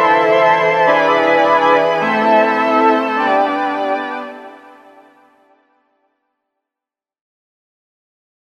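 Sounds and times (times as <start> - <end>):
SK10 organ: 0.0 - 5.2.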